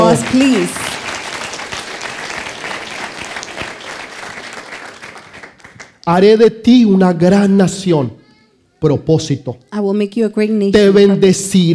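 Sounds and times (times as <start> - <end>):
audience applause: 0.0 - 6.0
speech: 0.2 - 0.9, 6.1 - 8.2, 8.8 - 11.7.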